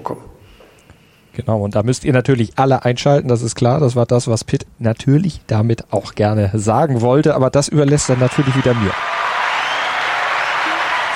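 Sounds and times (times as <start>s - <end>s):
speech: 1.4s - 9.4s
audience applause: 7.9s - 11.1s.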